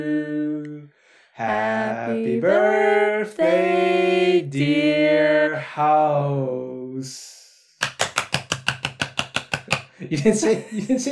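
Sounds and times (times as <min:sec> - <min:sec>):
speech: 0:00.0 - 0:00.4, 0:01.4 - 0:07.3, 0:10.1 - 0:11.0
hand clapping along to a song: 0:07.8 - 0:10.0.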